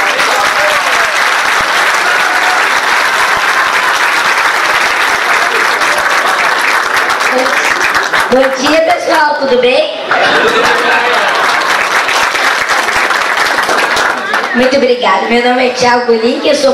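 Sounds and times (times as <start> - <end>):
audience applause: 0.0 - 8.9, 10.1 - 14.7
speech: 8.3 - 11.1, 14.6 - 16.7
laughter: 10.0 - 12.1.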